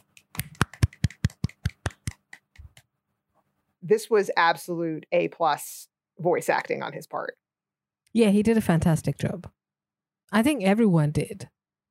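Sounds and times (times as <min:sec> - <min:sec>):
golf claps: 0:00.3 - 0:02.6
speech: 0:03.8 - 0:07.4, 0:08.1 - 0:09.6, 0:10.3 - 0:11.5.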